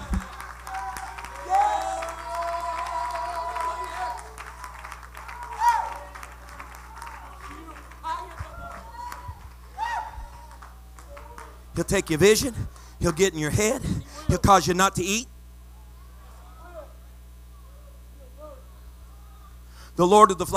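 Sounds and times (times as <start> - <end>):
audience clapping hands: 0.0 - 13.4
speech: 11.8 - 15.3, 20.0 - 20.5.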